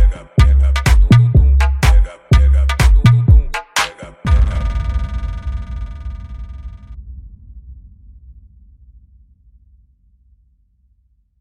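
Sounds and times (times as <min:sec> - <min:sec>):
mega funk automotivo music: 0:00.0 - 0:04.8.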